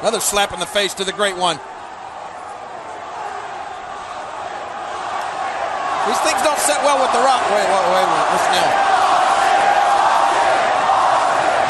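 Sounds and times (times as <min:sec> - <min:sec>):
speech: 0:00.0 - 0:01.8, 0:06.0 - 0:09.1
large arena crowd chanting and roaring: 0:00.0 - 0:11.6.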